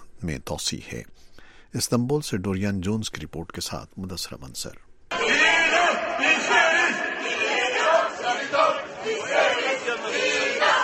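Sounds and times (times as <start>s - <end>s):
speech: 0.2s - 4.9s
protesters in Istanbul chanting slogans: 5.1s - 10.8s.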